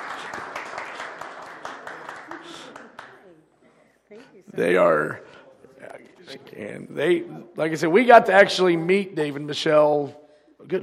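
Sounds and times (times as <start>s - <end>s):
audience clapping: 0.0s - 3.4s
speech: 4.6s - 5.3s, 6.6s - 10.8s.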